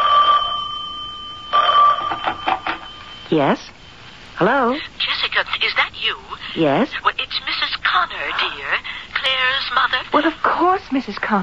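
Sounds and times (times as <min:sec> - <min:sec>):
telephone ringing in short trilling bursts: 0:00.0 - 0:03.3
speech: 0:03.3 - 0:03.7, 0:04.4 - 0:11.4.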